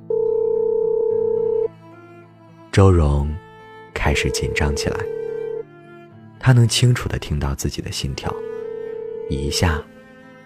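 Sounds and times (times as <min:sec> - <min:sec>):
telephone ringback tone after dialing: 0:00.0 - 0:01.7, 0:04.1 - 0:05.6, 0:08.3 - 0:09.7
speech: 0:02.8 - 0:03.4, 0:04.0 - 0:05.2, 0:06.4 - 0:08.5, 0:09.3 - 0:09.9.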